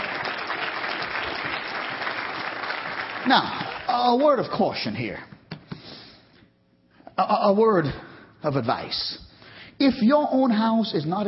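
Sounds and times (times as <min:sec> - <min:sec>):
audience applause: 0:00.0 - 0:04.5
speech: 0:03.2 - 0:05.3, 0:07.2 - 0:09.2, 0:09.8 - 0:11.2.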